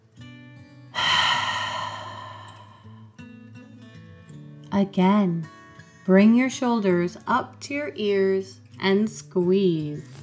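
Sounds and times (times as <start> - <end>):
deep breath during a guided relaxation exercise: 1.0 - 3.2
speech: 4.7 - 10.2.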